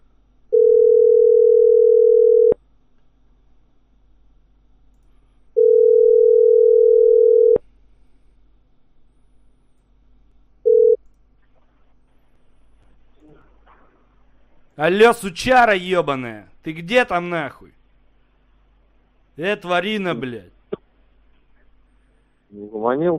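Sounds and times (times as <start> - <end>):
telephone line tone: 0.6 - 2.6, 5.6 - 7.6, 10.7 - 11.0
speech: 14.8 - 17.8, 19.4 - 20.6, 22.5 - 23.1.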